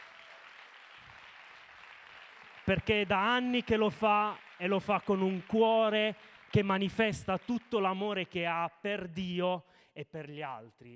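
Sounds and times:
faint audience applause at a church sharing gathering: 0.0s - 7.8s
speech: 2.7s - 10.9s.

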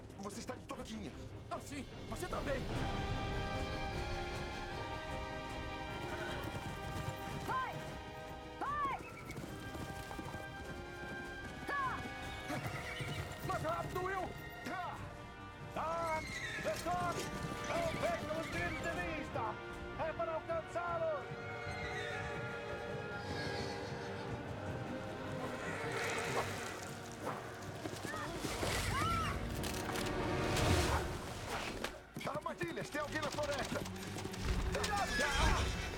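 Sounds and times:
speech: 0.2s - 3.5s
horse hooves clip-clopping: 2.1s - 35.9s
horse neighs and whinnies: 11.8s - 13.8s, 15.8s - 18.9s, 21.4s - 27.3s, 34.6s - 35.9s.

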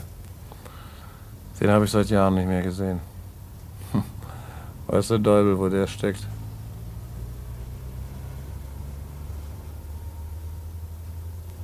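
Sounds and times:
cars starting to drive outside: 0.0s - 11.6s
speech: 1.6s - 3.1s, 5.0s - 6.4s.

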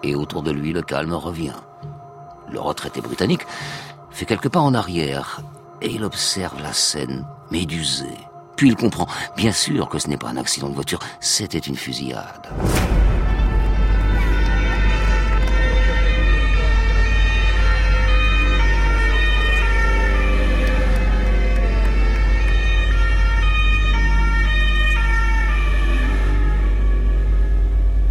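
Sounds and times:
speech: 0.0s - 1.7s, 2.5s - 13.2s
gendarmerie and rescue sirens wailing: 0.0s - 28.0s
constant low engine rumble: 12.6s - 28.0s.

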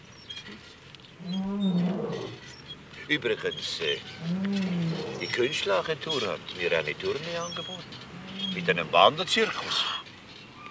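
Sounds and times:
lion roaring: 1.2s - 2.4s, 4.2s - 5.5s, 7.4s - 9.0s
speech: 3.1s - 10.0s.

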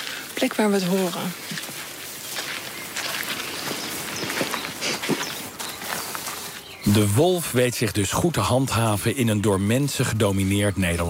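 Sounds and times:
footsteps walking slowly along a path: 0.0s - 7.0s
speech: 0.4s - 1.6s, 6.9s - 11.0s.

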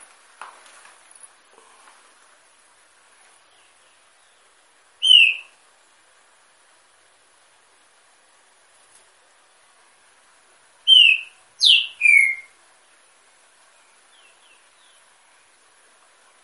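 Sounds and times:
green-winged saltator whistle: 5.0s - 5.6s, 10.9s - 12.6s.

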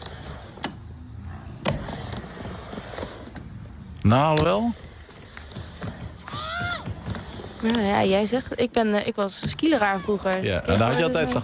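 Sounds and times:
skateboard with hard wheels rolling: 0.0s - 11.4s
speech: 4.0s - 4.8s, 7.6s - 11.4s.

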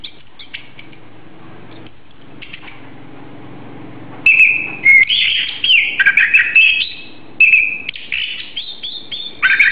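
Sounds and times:
Oriental magpie-robin song: 0.0s - 0.8s, 4.3s - 9.7s.

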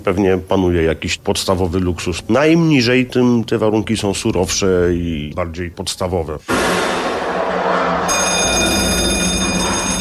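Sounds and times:
speech: 0.0s - 6.9s
sharp bell ringing: 8.1s - 10.0s.

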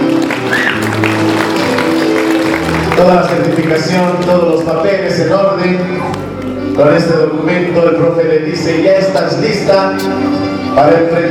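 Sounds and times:
crowd applauding at a school certificate presentation: 0.0s - 5.3s
speech: 3.0s - 6.2s, 6.8s - 11.2s.

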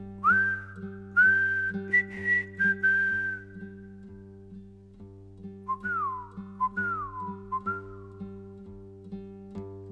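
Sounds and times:
whistled refrain of a soldiers' song: 0.2s - 4.1s, 5.7s - 8.2s.

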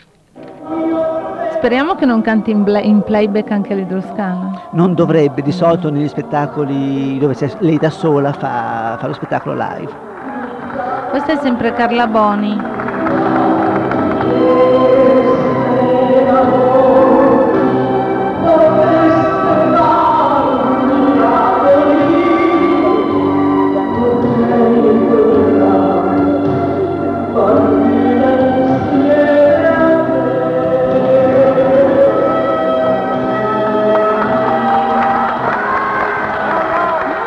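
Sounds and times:
theatre audience applause: 0.0s - 23.6s, 32.2s - 37.2s
laughter: 0.0s - 37.2s
speech: 1.6s - 10.1s, 11.1s - 13.3s.

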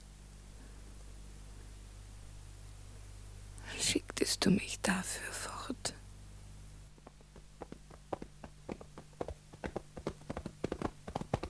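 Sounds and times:
low steady hum: 0.0s - 11.4s
speech: 4.3s - 6.0s
horse hooves clip-clopping: 7.0s - 11.4s.

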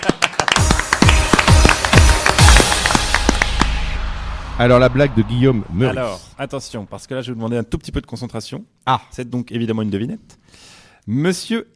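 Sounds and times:
one person clapping: 0.0s - 3.8s
speech: 4.6s - 11.7s.

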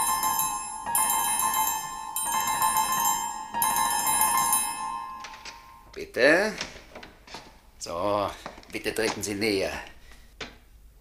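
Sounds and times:
doorbell ringing: 0.0s - 6.0s
speech: 8.7s - 9.9s.

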